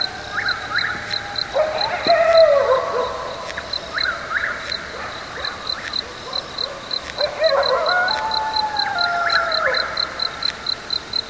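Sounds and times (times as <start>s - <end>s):
coyotes: 0.0s - 11.2s.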